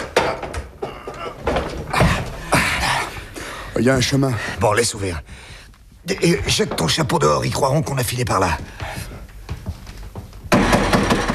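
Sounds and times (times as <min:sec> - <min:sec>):
large door panel heavy wooden knocks: 0:00.0 - 0:03.0, 0:08.4 - 0:11.3
speech: 0:03.8 - 0:09.0.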